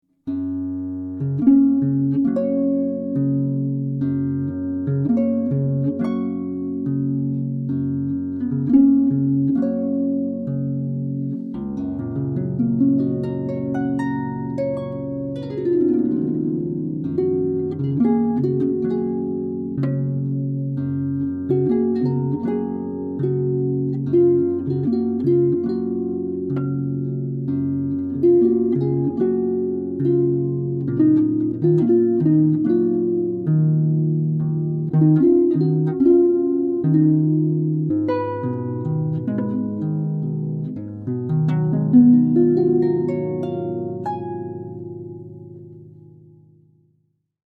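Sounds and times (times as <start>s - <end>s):
harp: 0.2s - 46.9s.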